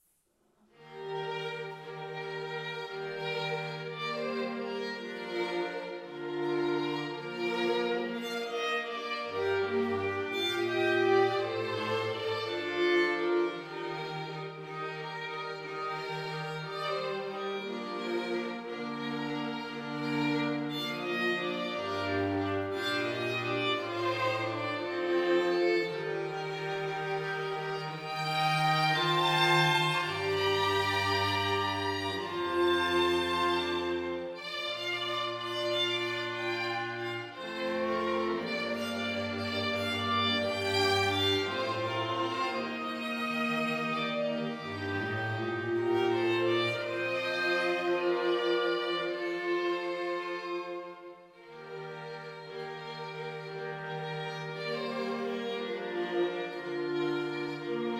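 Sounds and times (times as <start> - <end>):
string quartet: 0.7 - 57.9.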